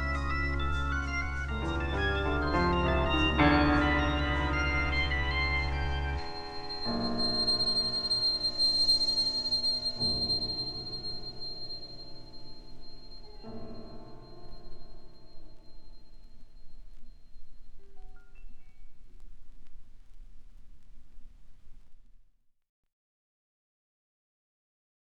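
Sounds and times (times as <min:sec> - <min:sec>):
organ playing a classical-style piece: 0:00.0 - 0:15.9.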